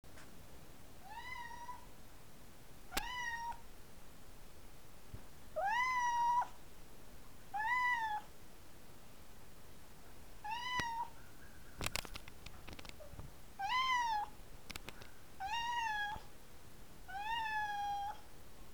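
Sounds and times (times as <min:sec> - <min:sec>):
soft background hiss: 0:00.1 - 0:18.7
Siberian cat meowing: 0:03.0 - 0:03.6, 0:05.6 - 0:06.5, 0:07.6 - 0:08.3, 0:10.5 - 0:11.1, 0:13.6 - 0:14.3, 0:15.4 - 0:16.3, 0:17.1 - 0:18.2
sharp clicks and taps: 0:11.8 - 0:13.0, 0:14.7 - 0:15.1.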